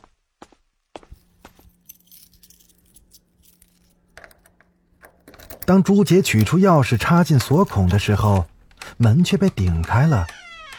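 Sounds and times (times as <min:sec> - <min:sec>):
footsteps walking home: 0:00.0 - 0:03.1, 0:06.0 - 0:10.7
speech: 0:05.7 - 0:10.4.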